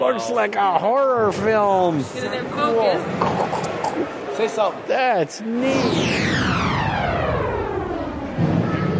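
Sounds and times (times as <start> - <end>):
speech: 0.1 - 6.3
simulated thunderstorm thunder rumble: 5.5 - 8.9.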